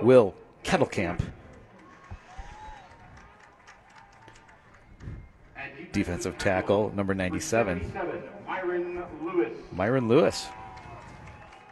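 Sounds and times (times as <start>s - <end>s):
speech: 0.0s - 1.4s, 5.9s - 10.6s
crowd applause and cheering at a football game: 1.0s - 5.5s, 10.1s - 11.6s.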